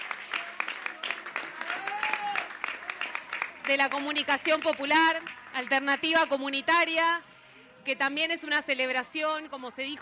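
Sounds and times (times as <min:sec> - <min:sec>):
audience clapping at the close of a community media gathering: 0:00.0 - 0:05.8
speech: 0:03.7 - 0:10.0.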